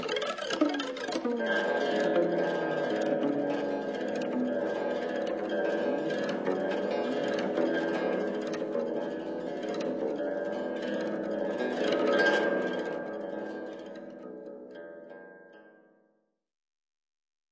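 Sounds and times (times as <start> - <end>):
qin music: 0.0 - 13.3.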